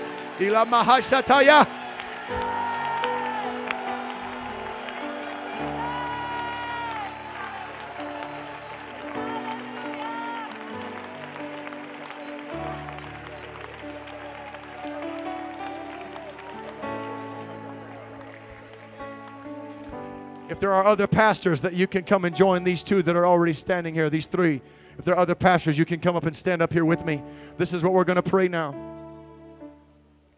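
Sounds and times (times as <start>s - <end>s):
audience shouting: 0.0s - 18.3s
audience clapping hands: 0.0s - 22.0s
speech: 0.4s - 2.5s, 20.6s - 28.9s.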